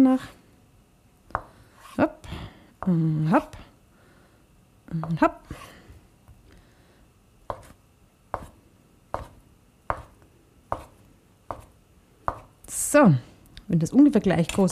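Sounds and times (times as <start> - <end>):
speech: 0.0 - 0.4, 2.0 - 3.6, 4.9 - 5.7, 12.9 - 14.7
knife chopping tofu against a cutting board: 7.5 - 10.9, 11.5 - 12.5.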